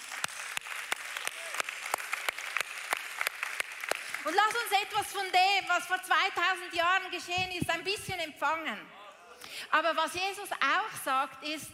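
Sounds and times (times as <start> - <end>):
clapping: 0.0 - 5.2
speech: 4.2 - 9.0, 9.6 - 11.7.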